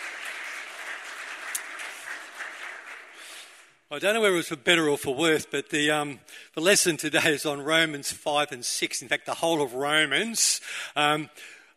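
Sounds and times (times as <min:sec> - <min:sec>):
audience applause: 0:00.0 - 0:03.5
speech: 0:03.9 - 0:11.6.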